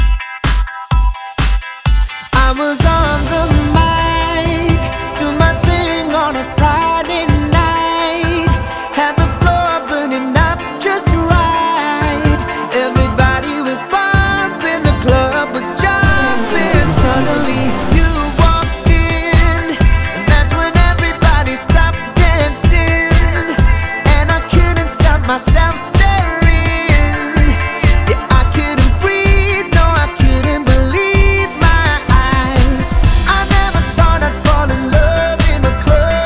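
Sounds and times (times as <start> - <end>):
music track at 127 BPM: 0.2 - 36.2.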